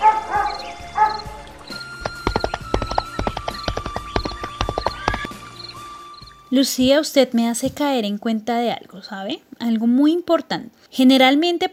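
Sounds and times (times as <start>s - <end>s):
dogs barking: 0.0s - 1.4s
horses galloping: 1.4s - 5.7s
speech: 6.5s - 11.7s.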